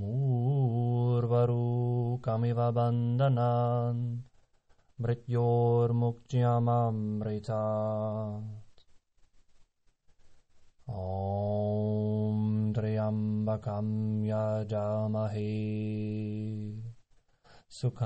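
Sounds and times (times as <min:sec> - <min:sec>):
mantra chanting: 0:00.0 - 0:04.3, 0:05.0 - 0:08.6, 0:10.9 - 0:17.0, 0:17.7 - 0:18.0.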